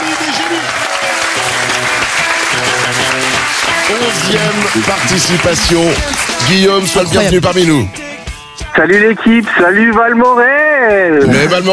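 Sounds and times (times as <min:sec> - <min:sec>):
audience applause: 0:00.0 - 0:07.4
speech: 0:03.9 - 0:08.0, 0:08.8 - 0:11.7.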